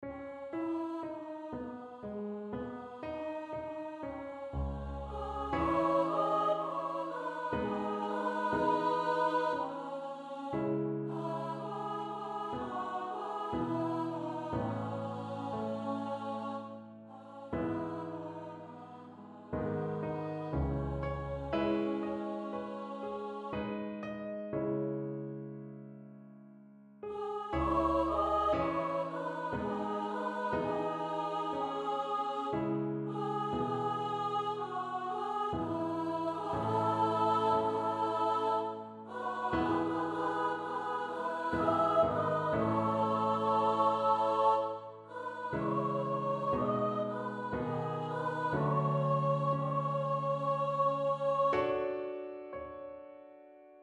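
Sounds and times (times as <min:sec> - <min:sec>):
piano: 0:00.0 - 0:53.8.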